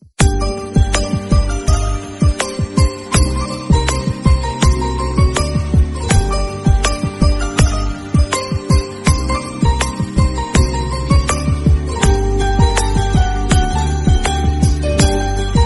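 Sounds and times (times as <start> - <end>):
Tamil love background music ringtone: 0.2 - 15.6.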